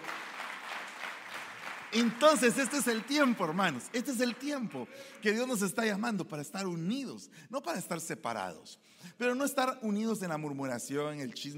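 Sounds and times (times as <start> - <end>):
audience applauding: 0.0 - 5.4
speech: 1.9 - 11.5.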